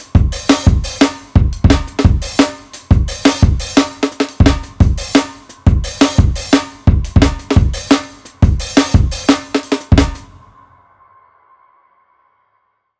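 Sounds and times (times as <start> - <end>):
drum kits playing: 0.0 - 10.3.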